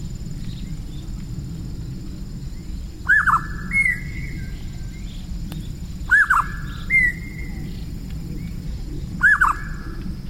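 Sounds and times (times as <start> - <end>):
grey-sided scimitar babbler whistling, Pomatorhinus swinhoei, in Jiangxi, China: 3.0 - 4.6, 6.1 - 7.7, 9.2 - 9.9.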